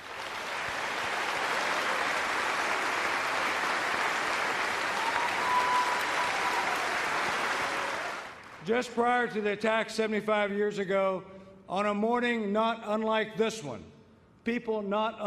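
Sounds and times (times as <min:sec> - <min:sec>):
audience applause: 0:00.0 - 0:08.6
speech: 0:08.7 - 0:15.2.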